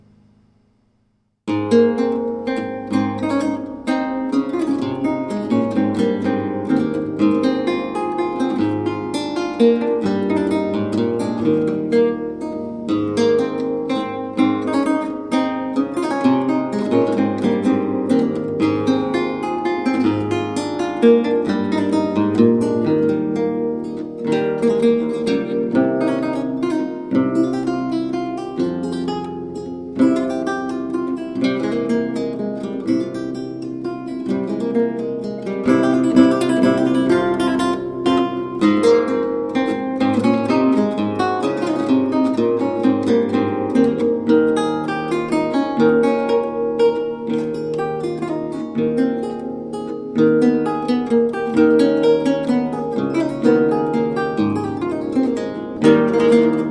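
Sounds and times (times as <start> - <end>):
lute playing a sonata allegro in A major: 1.5 - 56.7.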